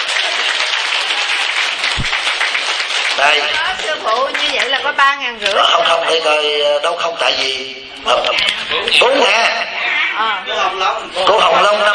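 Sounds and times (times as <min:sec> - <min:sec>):
applause at a gathering led by a spiritual master: 0:00.0 - 0:04.8
speech: 0:03.3 - 0:11.9.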